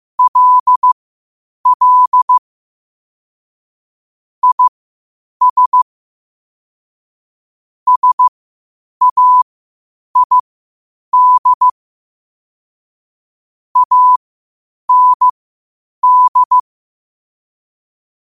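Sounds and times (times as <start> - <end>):
morse code at 5 wpm: 0.2 - 1.0, 1.7 - 2.4, 4.4 - 4.7, 5.4 - 5.8, 7.9 - 8.3, 9.0 - 9.4, 10.2 - 10.4, 11.2 - 11.7, 13.8 - 14.2, 14.9 - 15.4, 16.0 - 16.6.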